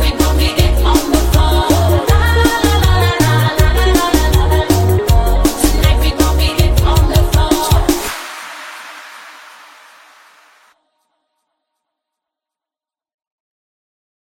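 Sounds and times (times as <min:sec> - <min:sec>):
tecnobrega music: 0:00.0 - 0:08.8.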